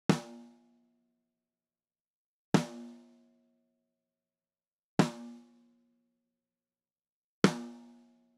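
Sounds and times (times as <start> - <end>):
snare drum: 0.1 - 0.4, 2.6 - 2.9, 5.0 - 5.4.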